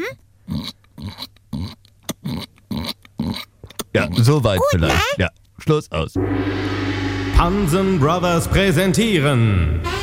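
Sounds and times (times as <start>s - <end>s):
person imitating a piglet's oink: 0.0s - 5.3s
speech: 3.9s - 6.8s, 7.4s - 9.9s.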